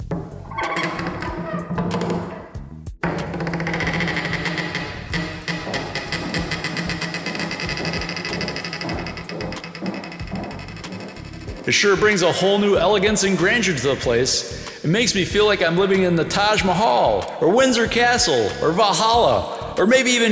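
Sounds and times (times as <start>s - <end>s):
new front door being opened: 0.0s - 12.2s
speech: 11.7s - 20.2s.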